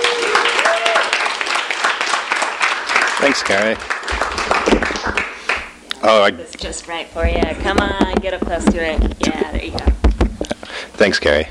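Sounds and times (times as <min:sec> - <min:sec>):
audience applause: 0:00.0 - 0:05.8
speech: 0:03.2 - 0:05.2, 0:06.0 - 0:10.0, 0:11.0 - 0:11.4.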